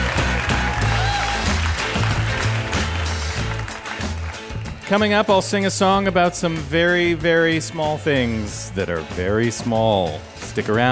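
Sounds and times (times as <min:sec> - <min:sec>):
studio audience applause: 0:00.0 - 0:05.1
speech: 0:04.9 - 0:10.9.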